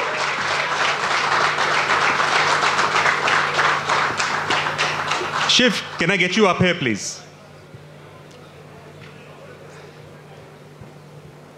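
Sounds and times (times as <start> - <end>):
audience applause: 0.0 - 6.5
speech: 5.5 - 7.2.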